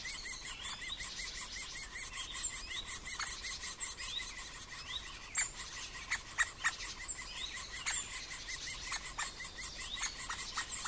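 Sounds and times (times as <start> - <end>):
middle spotted woodpecker squealing calls: 0.0 - 10.8.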